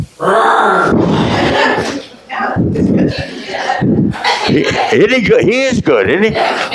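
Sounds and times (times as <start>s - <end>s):
speech: 0.1s - 0.4s, 4.5s - 6.7s
man imitating a lion roar: 0.2s - 1.6s
laughter: 0.9s - 6.7s.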